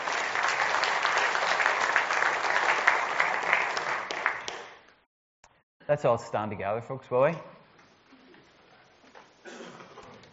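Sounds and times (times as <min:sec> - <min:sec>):
audience applause: 0:00.0 - 0:04.8
speech: 0:05.9 - 0:07.6.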